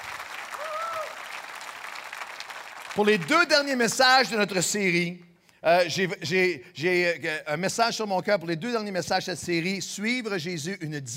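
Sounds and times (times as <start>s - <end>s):
church congregation applauding: 0.0s - 4.5s
speech: 3.0s - 11.1s.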